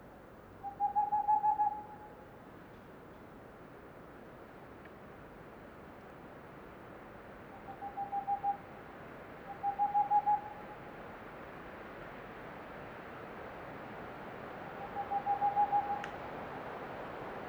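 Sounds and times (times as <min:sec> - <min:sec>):
male Tengmalm's owl hooting: 0:00.6 - 0:02.1, 0:07.7 - 0:08.6, 0:09.5 - 0:10.6, 0:14.8 - 0:16.1.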